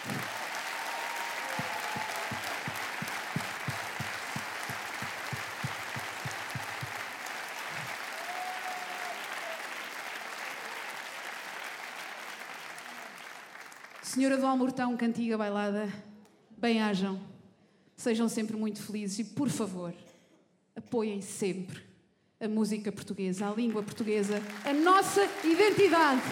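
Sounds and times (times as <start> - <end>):
audience applause: 0.0 - 14.1, 23.8 - 26.3
speech: 14.1 - 17.3, 18.0 - 20.1, 20.9 - 26.3.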